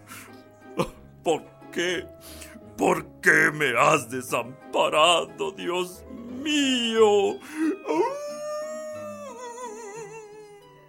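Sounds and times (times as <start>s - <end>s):
speech: 0.8s - 8.2s
human voice imitating a wolf howling: 6.1s - 10.8s.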